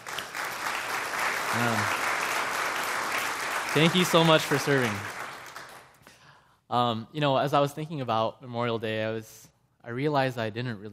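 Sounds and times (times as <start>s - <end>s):
audience applause: 0.0s - 6.0s
speech: 1.5s - 2.0s, 3.7s - 5.2s, 6.7s - 10.9s.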